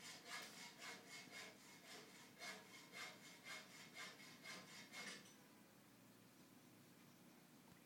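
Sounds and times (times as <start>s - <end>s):
sawing wood: 0.0s - 5.3s.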